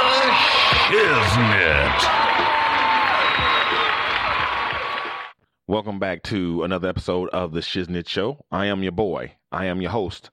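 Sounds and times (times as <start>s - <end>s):
crowd noise: 0.1s - 5.3s
speech: 0.9s - 2.6s, 5.7s - 10.3s
applause for a show intro at Red Rock Studios in Los Angeles: 1.2s - 5.3s.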